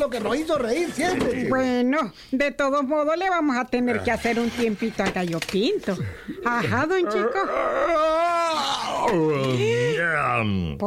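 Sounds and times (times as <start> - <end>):
speech: 0.0 - 10.8
loud long yawn: 7.2 - 10.3.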